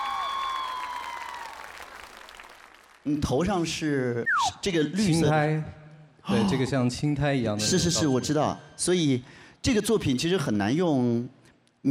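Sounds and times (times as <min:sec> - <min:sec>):
audience applause: 0:00.0 - 0:03.1
speech: 0:03.0 - 0:11.8.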